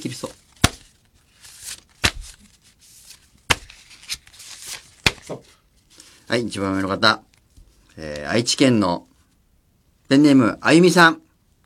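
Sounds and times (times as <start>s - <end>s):
stack of postcards being shuffled: 0.0s - 7.4s
postcard slaps: 0.5s - 2.5s, 3.5s - 5.5s
speech: 6.3s - 7.3s, 8.0s - 9.1s, 10.1s - 11.2s.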